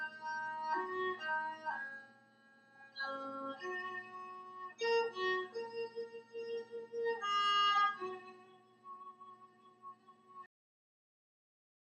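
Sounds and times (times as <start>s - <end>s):
erhu playing a hymn: 0.0s - 2.0s, 2.9s - 9.9s.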